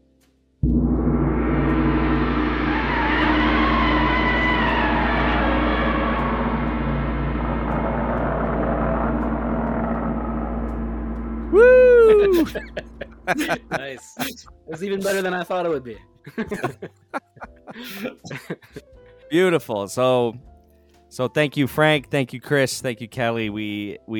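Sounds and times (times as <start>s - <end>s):
gong being struck with a mallet: 0.6s - 13.8s
laughter: 12.0s - 15.2s, 16.3s - 18.8s
speech: 12.4s - 20.5s, 21.1s - 24.1s.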